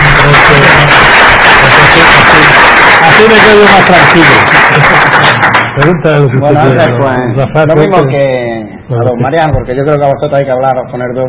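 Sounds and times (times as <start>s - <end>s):
audience applause: 0.0s - 6.0s
speech: 3.2s - 5.0s, 5.8s - 11.2s.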